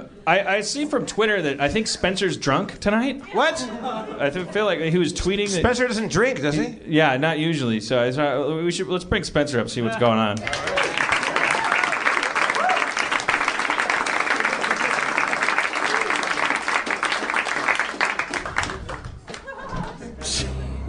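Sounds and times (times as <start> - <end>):
speech: 0.2 - 11.0
laughter: 3.3 - 5.0, 18.6 - 20.8
audience applause: 10.4 - 20.1.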